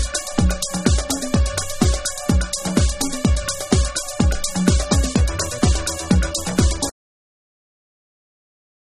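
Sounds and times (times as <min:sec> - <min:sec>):
house groove mix: 0:00.0 - 0:06.9.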